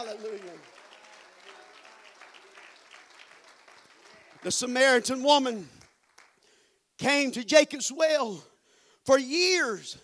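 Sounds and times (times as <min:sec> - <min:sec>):
audience clapping hands: 0:00.0 - 0:06.6
speech: 0:04.4 - 0:05.8, 0:07.0 - 0:10.0.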